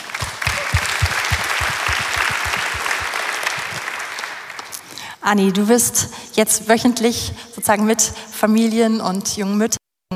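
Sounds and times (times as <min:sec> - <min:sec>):
audience applause: 0:00.0 - 0:05.0
speech: 0:05.2 - 0:09.8.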